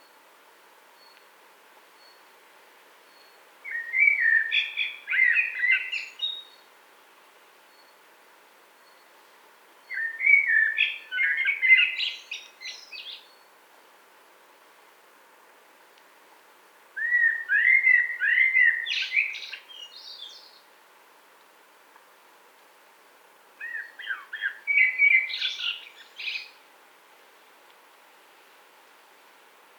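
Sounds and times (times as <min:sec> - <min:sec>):
Eurasian blackbird song phrase: 0:03.2 - 0:06.6, 0:09.9 - 0:13.4, 0:17.0 - 0:20.5, 0:23.6 - 0:26.6.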